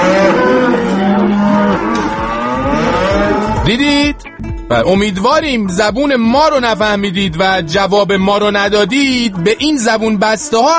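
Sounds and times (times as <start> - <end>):
cows mooing: 0.0 - 3.7
speech: 4.4 - 10.7.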